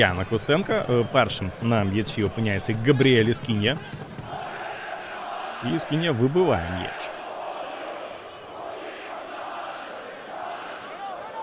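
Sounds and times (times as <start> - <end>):
speech: 0.0 - 4.0, 5.6 - 7.2
stadium crowd singing: 1.5 - 11.4.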